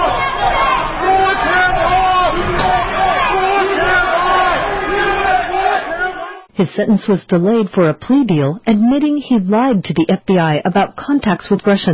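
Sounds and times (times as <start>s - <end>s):
protest crowd chanting outside courthouse: 0.0s - 6.5s
speech: 6.6s - 11.9s.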